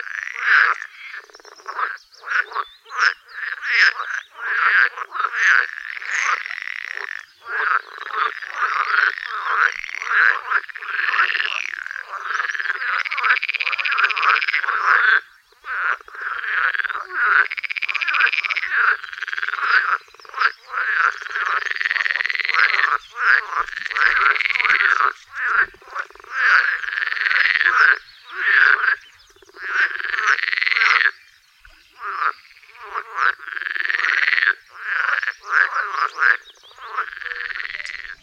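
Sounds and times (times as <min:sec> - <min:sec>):
water frog croaking: 0:00.0 - 0:38.2.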